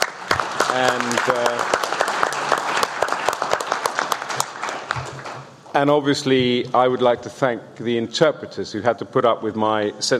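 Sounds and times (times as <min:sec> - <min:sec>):
audience applause: 0:00.0 - 0:05.6
speech: 0:00.7 - 0:01.8, 0:05.8 - 0:10.1.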